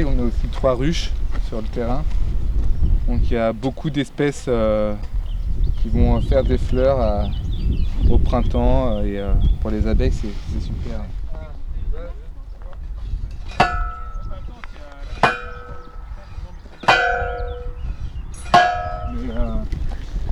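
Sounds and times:
speech: 0.0s - 2.2s, 3.1s - 5.1s, 5.8s - 11.2s
faint wind: 0.0s - 20.3s
fence stakes being hammered into the ground with ringing metallic clangs: 13.5s - 14.4s, 15.2s - 16.2s, 16.8s - 17.8s, 18.4s - 19.1s.

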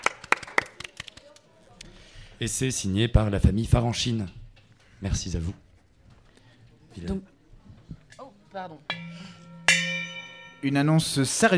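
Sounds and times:
hands clapping in applause: 0.0s - 1.5s
speech: 2.4s - 4.4s, 5.0s - 5.6s, 7.0s - 7.3s, 8.5s - 9.4s, 10.6s - 11.5s.

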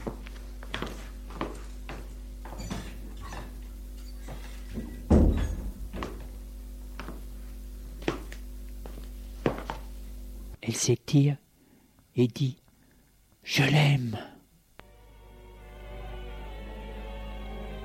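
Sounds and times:
footsteps of a girl going up to her bedroom: 0.0s - 9.9s
speech: 10.7s - 11.4s, 12.2s - 12.6s, 13.4s - 14.3s.

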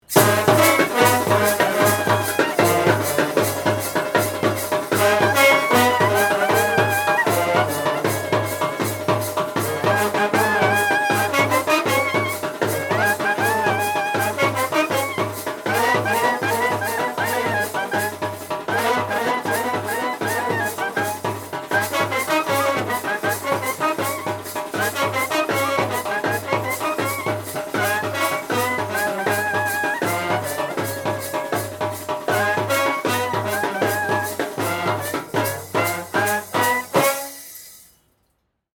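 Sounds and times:
brass instruments: 0.0s - 37.9s.

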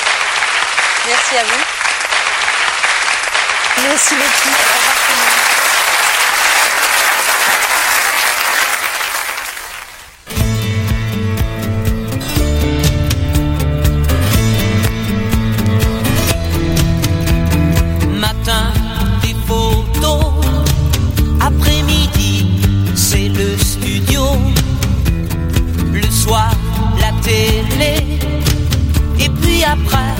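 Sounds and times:
audience applause: 0.0s - 10.3s
speech: 1.1s - 1.8s, 3.8s - 5.6s
music: 10.3s - 30.1s.

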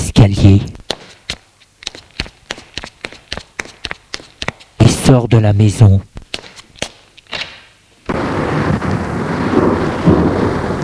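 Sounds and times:
speech: 0.2s - 0.8s, 5.1s - 6.2s
thunder cracks outside a house: 8.1s - 10.8s.

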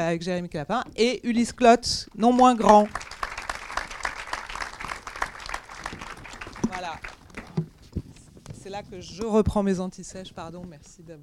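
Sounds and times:
speech: 0.0s - 3.1s, 8.9s - 11.2s
audience applause: 2.4s - 7.6s.

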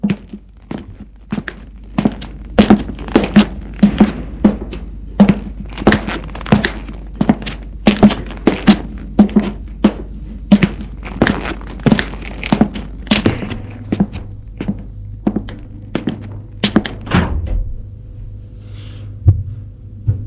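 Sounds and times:
low steady hum: 0.0s - 20.2s
door being opened: 13.2s - 17.9s.

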